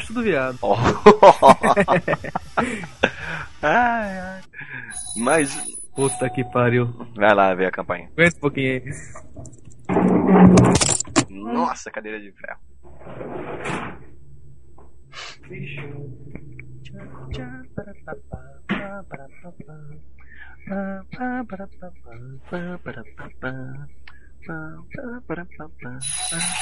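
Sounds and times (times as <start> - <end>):
laughter: 0.0 - 5.5, 8.6 - 9.2
speech: 0.1 - 13.9, 15.1 - 26.6
bell ringing: 4.9 - 7.0, 26.0 - 26.6.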